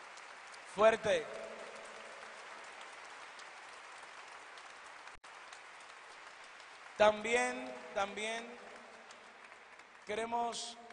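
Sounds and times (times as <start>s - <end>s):
audience applause: 0.0s - 10.9s
speech: 0.8s - 1.4s, 7.0s - 8.7s, 10.1s - 10.8s.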